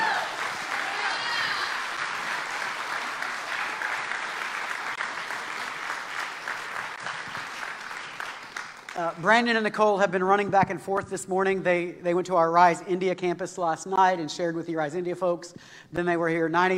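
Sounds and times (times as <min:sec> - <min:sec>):
audience applause at a church event: 0:00.0 - 0:09.2
speech: 0:09.0 - 0:16.7.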